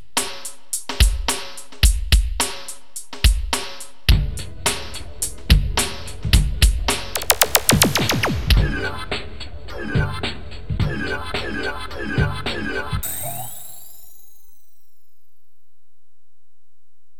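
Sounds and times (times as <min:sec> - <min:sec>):
drums: 0:00.0 - 0:13.1.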